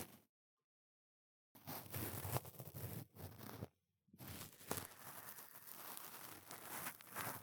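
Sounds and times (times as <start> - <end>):
cotton swab ear cleaning: 1.6 - 7.4.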